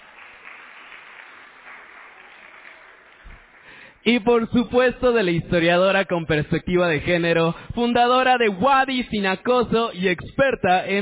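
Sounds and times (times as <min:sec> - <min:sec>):
crowd applauding: 0:00.0 - 0:04.4
speech: 0:04.0 - 0:11.0.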